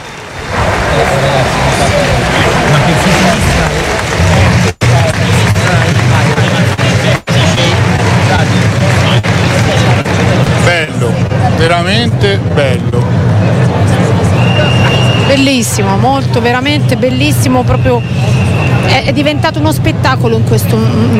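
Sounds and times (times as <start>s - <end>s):
large audience applause: 0.0s - 11.2s
crowd noise: 0.0s - 21.1s
speech: 15.8s - 21.1s.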